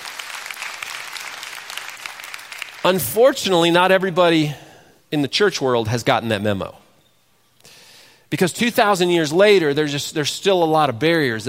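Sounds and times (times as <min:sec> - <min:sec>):
audience applause: 0:00.0 - 0:03.0
speech: 0:02.8 - 0:06.8, 0:08.3 - 0:11.4.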